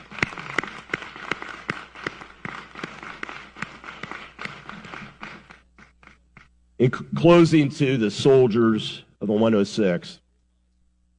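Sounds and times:
audience applause: 0:00.0 - 0:06.1
speech: 0:06.8 - 0:10.2.

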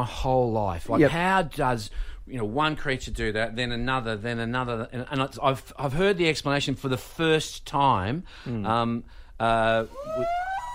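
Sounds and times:
speech: 0:00.0 - 0:10.4
whale song: 0:09.8 - 0:10.7.

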